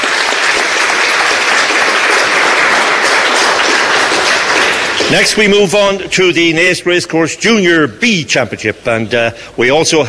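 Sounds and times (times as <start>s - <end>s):
round of applause: 0.0s - 5.9s
speech: 5.1s - 10.0s.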